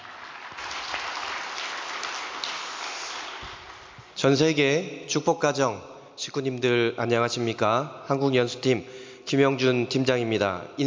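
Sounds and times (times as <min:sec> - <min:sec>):
audience applause: 0:00.0 - 0:04.2
speech: 0:04.2 - 0:10.8.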